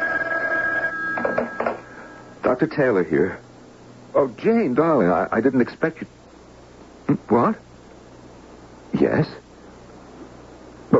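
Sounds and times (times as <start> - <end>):
telephone bell ringing: 0.0 - 2.4
speech: 2.5 - 3.4, 4.1 - 6.2, 7.1 - 7.6, 9.0 - 9.4.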